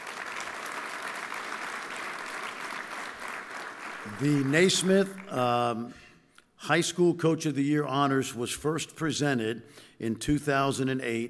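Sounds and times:
audience applause at a high school basketball awards ceremony: 0.0s - 5.2s
speech: 4.0s - 6.0s, 6.6s - 11.2s.

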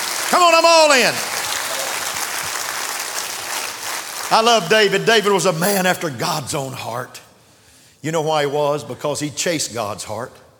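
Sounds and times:
speech: 0.3s - 1.3s, 4.3s - 7.2s, 8.0s - 10.4s
audience clapping hands: 1.2s - 4.3s.

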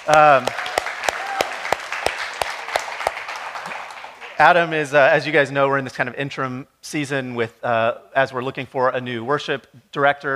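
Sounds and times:
audience round of applause: 0.0s - 4.9s
speech: 0.1s - 0.7s, 4.4s - 10.3s.

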